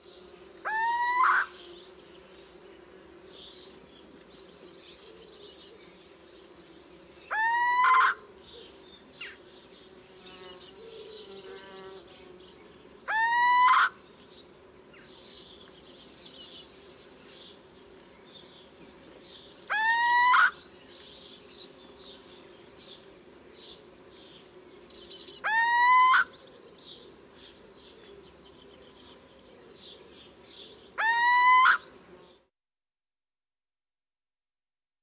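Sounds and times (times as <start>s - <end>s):
little owl typical call: 0.6s - 1.5s, 7.3s - 8.2s, 13.1s - 14.0s, 19.7s - 20.6s, 25.0s - 26.3s, 31.0s - 31.9s.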